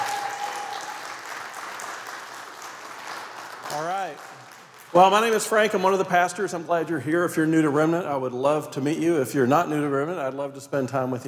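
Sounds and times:
audience applause: 0.0s - 5.6s
speech: 3.7s - 11.2s.

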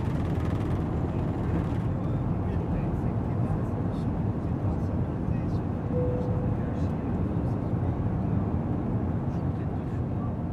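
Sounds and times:
airplane taking off from Delhi for Kathmandu: 0.0s - 10.4s
brief tone: 5.9s - 6.6s.

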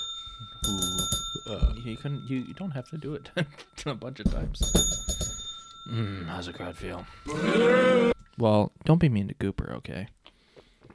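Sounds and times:
bell ding: 0.0s - 7.4s
speech: 0.7s - 5.2s, 5.9s - 10.2s.

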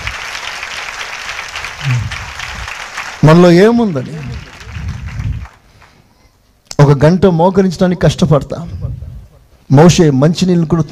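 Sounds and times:
church congregation clapping during a Christian sermon: 0.0s - 6.0s
speech: 3.2s - 4.5s, 6.8s - 8.8s, 9.7s - 10.9s.

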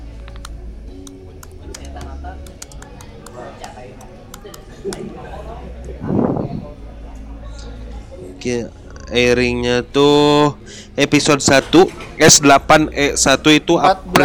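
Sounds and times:
typing on a computer keyboard to run a Google search: 1.0s - 3.1s
speech: 4.8s - 6.2s, 8.4s - 14.2s.

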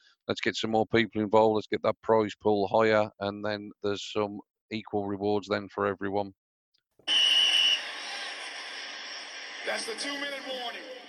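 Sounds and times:
speech: 0.3s - 6.4s, 9.7s - 11.0s
whistle signalling the two-minute warning: 7.0s - 8.9s.

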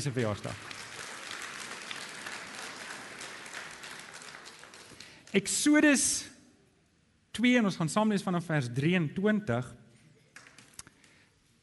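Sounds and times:
speech: 0.0s - 0.7s, 5.3s - 6.3s, 7.4s - 9.8s
audience applause: 0.0s - 5.3s.

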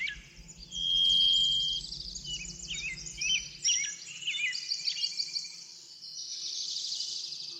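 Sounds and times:
low hum: 0.0s - 5.4s
backyard birds chirping and singing: 0.0s - 5.6s.

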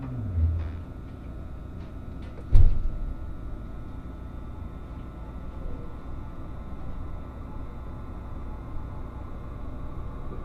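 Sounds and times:
Resort Shirakami No. 4 train running on the Gono Line: 0.0s - 1.1s
faint constant whine: 0.0s - 10.4s.

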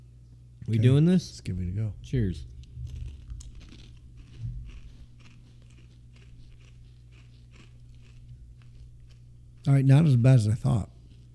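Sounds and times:
speech: 0.7s - 2.6s, 9.7s - 10.9s
crunching on a spicy queso tortilla chip: 2.7s - 9.9s, 11.0s - 11.3s.

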